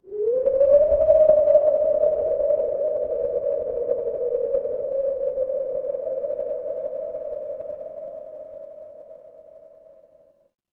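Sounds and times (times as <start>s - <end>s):
wind: 0.0s - 10.3s.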